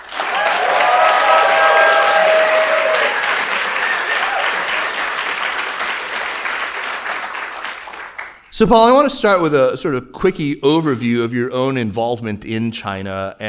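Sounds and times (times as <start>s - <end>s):
crowd applauding: 0.0s - 8.5s
speech: 8.6s - 13.4s.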